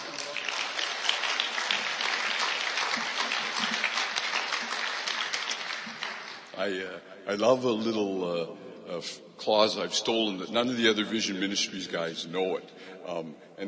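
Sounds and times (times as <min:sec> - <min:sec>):
audience at a ministry gathering applauding a speaker: 0:00.0 - 0:06.6
speech: 0:06.6 - 0:13.6.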